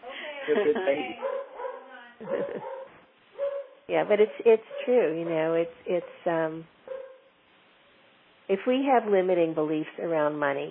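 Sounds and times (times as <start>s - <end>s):
laughter: 0.1s - 1.2s, 2.2s - 2.8s
speech: 0.5s - 1.5s, 2.2s - 2.8s, 3.9s - 6.8s, 8.5s - 10.7s
dog barking and whimpering: 1.2s - 3.8s, 6.9s - 7.3s.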